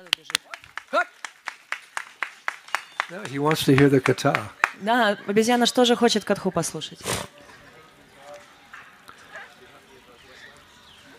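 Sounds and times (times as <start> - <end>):
audience clapping: 0.0 - 4.8
speech: 3.1 - 7.4.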